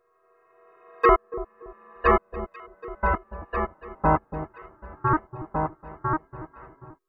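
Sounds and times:
tape arpeggio: 1.0 - 7.0.

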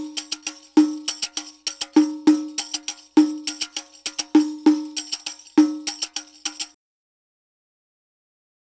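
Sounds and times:
Arabic rhythm percussion: 0.0 - 6.8.

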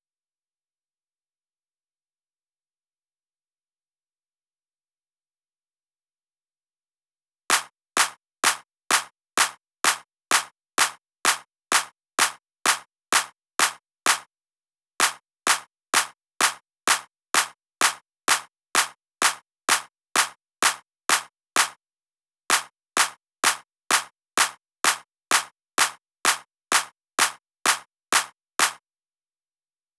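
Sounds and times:
drum loop with claps: 7.5 - 14.3, 15.0 - 21.8, 22.5 - 28.8.

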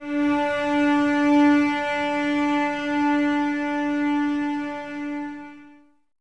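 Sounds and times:
cello section playing D without vibrato: 0.0 - 5.9.

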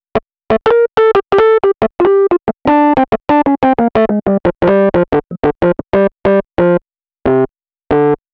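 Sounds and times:
Rhodes electric piano solo in cinematic funk: 0.6 - 6.8.

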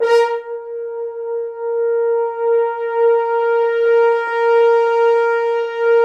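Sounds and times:
French horns, dry: 0.0 - 6.0.

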